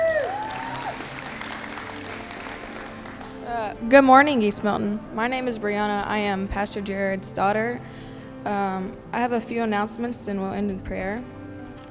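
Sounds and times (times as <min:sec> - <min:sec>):
audience applauding: 0:00.0 - 0:03.8
speech: 0:03.5 - 0:11.4.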